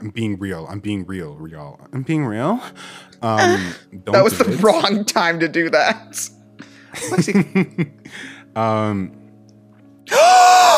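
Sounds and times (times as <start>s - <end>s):
speech: 0.0s - 9.2s
person gasping: 2.8s - 3.9s.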